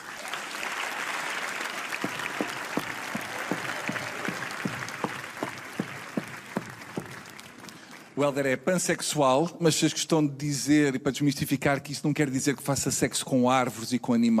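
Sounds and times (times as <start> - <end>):
audience applause: 0.0 - 8.2
speech: 8.2 - 14.3.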